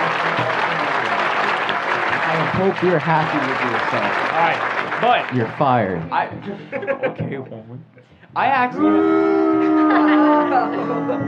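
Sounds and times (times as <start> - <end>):
applause: 0.0 - 6.2
laughter: 0.0 - 8.1, 8.8 - 11.2
speech: 2.5 - 11.2.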